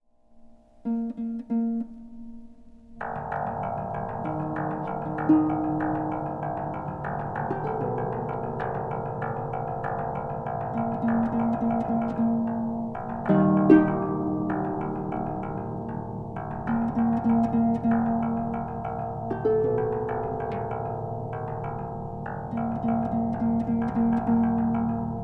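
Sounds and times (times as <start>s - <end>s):
harp: 0.2s - 25.2s.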